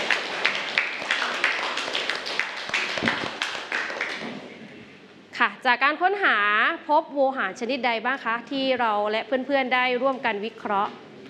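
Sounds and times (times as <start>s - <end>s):
classroom applause: 0.0s - 4.6s
speech: 5.6s - 11.0s.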